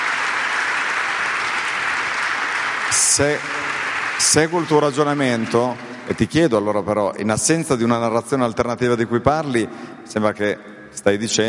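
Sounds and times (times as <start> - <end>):
audience applause: 0.0 - 6.3
speech: 2.9 - 11.4.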